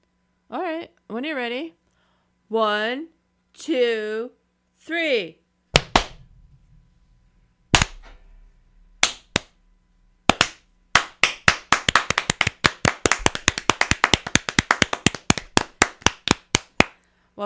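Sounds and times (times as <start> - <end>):
speech: 0.5 - 1.8, 2.5 - 5.4
hand clapping with cloth-covered hands: 5.8 - 6.2, 7.7 - 8.1, 9.0 - 9.5, 10.3 - 17.0.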